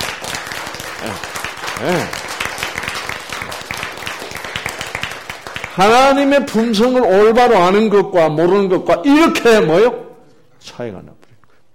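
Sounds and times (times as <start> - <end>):
crowd clapping: 0.0 - 6.6
speech: 1.0 - 2.3, 5.8 - 10.0, 10.8 - 11.2.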